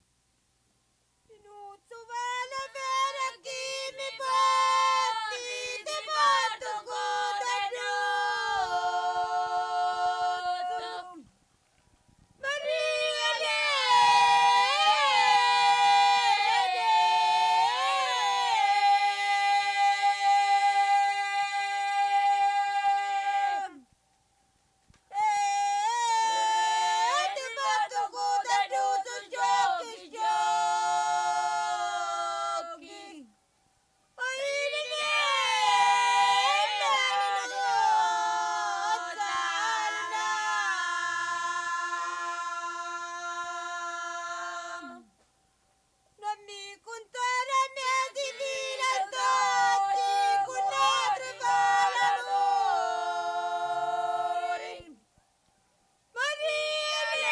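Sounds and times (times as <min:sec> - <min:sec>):
harvest song: 0:00.0 - 0:57.2.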